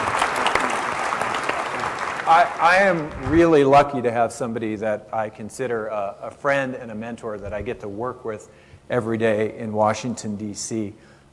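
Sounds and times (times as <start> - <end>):
audience applause at a political event welcoming a senator: 0.0 - 3.2
speech: 2.3 - 11.1.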